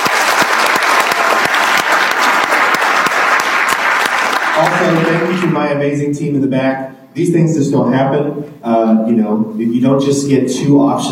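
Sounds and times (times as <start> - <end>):
audience applause: 0.0 - 5.6
speech: 4.6 - 11.1.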